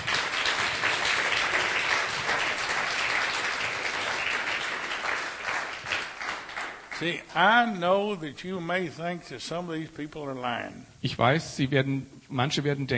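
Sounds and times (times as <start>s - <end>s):
congregation applause at a church service: 0.0s - 7.6s
speech: 7.0s - 12.9s.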